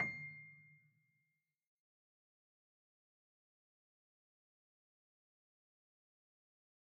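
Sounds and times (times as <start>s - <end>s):
piano sampler: 0.0s - 0.6s.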